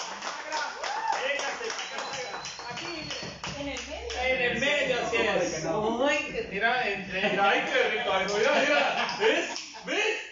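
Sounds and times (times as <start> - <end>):
audience applause: 0.0 - 4.3
speech: 4.4 - 10.0
laughter: 7.0 - 10.2.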